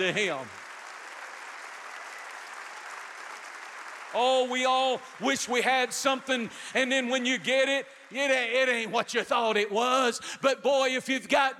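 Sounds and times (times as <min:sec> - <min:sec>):
speech: 0:00.0 - 0:00.6, 0:04.1 - 0:11.5
audience clapping hands: 0:00.0 - 0:08.9.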